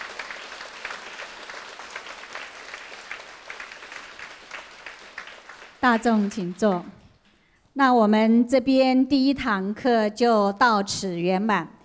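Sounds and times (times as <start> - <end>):
warm applause: 0.0 - 7.1
speech: 5.8 - 7.0, 7.8 - 11.8.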